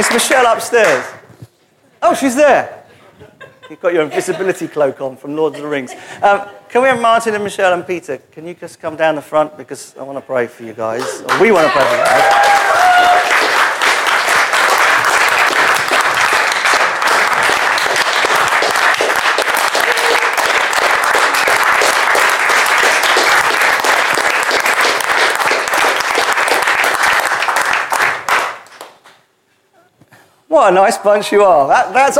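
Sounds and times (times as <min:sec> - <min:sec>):
speech: 0:00.0 - 0:01.2, 0:02.0 - 0:02.8, 0:03.7 - 0:12.7, 0:30.6 - 0:32.1
laughter: 0:02.9 - 0:06.6
audience applause: 0:11.0 - 0:29.0.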